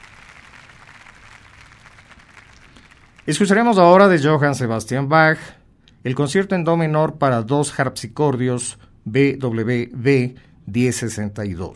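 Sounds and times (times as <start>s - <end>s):
audience applauding after orchestral performance: 0.0s - 3.7s
speech: 3.2s - 11.7s.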